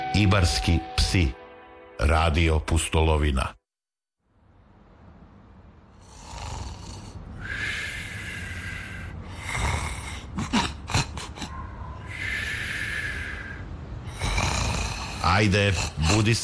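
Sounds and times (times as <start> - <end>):
speech: 0.1 - 3.6, 15.3 - 16.4
snoring: 6.0 - 11.5, 12.1 - 16.3.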